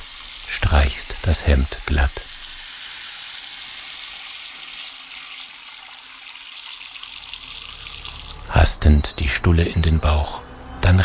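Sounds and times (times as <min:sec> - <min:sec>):
water running from a tap: 0:00.0 - 0:08.5
speech: 0:00.8 - 0:02.3, 0:08.6 - 0:11.0.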